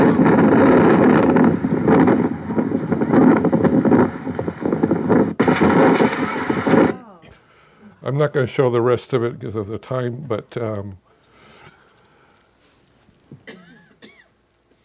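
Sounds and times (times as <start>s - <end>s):
strong wind blowing against refugee camp tents in Greece: 0.0s - 7.1s
speech: 8.2s - 11.0s.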